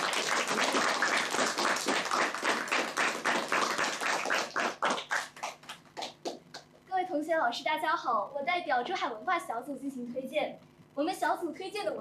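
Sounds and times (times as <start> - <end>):
group clapping: 0.0 - 6.8
speech: 7.4 - 12.0.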